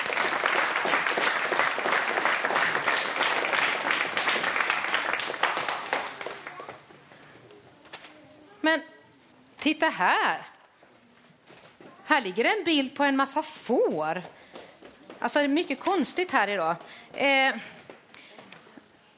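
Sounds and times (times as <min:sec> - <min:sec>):
audience applause: 0:00.0 - 0:06.9
speech: 0:08.7 - 0:08.9, 0:09.6 - 0:10.5, 0:12.1 - 0:14.4, 0:15.2 - 0:17.8.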